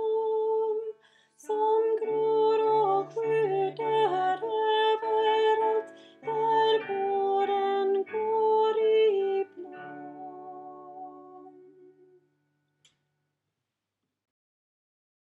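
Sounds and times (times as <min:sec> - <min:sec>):
tenor singing: 0:00.0 - 0:12.2.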